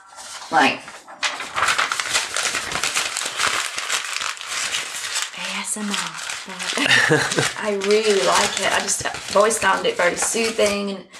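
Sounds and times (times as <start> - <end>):
paper being scrunched up: 0.0 - 10.9
speech: 0.5 - 0.9, 5.7 - 11.1
laughter: 6.8 - 7.6.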